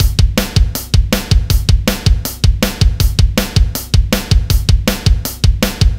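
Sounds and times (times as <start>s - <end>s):
rock music loop: 0.0s - 5.9s.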